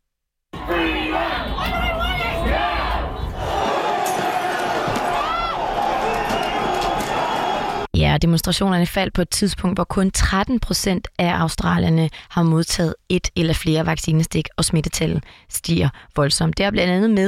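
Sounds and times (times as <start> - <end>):
protest crowd chanting and shouting in city streets: 0.6 - 7.9
speech: 8.2 - 17.2.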